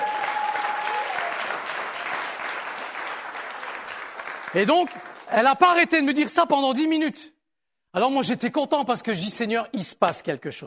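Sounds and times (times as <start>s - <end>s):
audience applause: 0.0s - 5.5s
speech: 4.5s - 7.3s, 7.9s - 10.6s.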